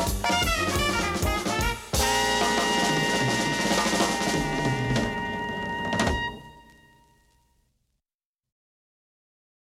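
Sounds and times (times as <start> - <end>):
swing music: 0.0 - 7.4.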